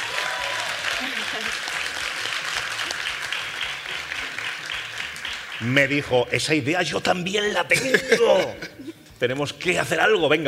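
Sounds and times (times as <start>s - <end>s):
audience applause: 0.0s - 6.1s
speech: 1.3s - 1.8s, 5.6s - 10.4s.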